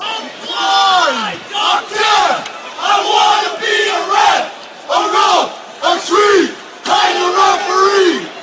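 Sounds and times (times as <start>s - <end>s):
football fans chanting: 0.2s - 8.4s.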